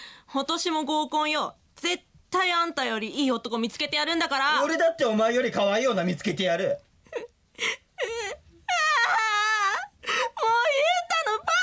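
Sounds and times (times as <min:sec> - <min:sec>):
speech: 0:00.3 - 0:08.1
woman crying: 0:07.1 - 0:11.6.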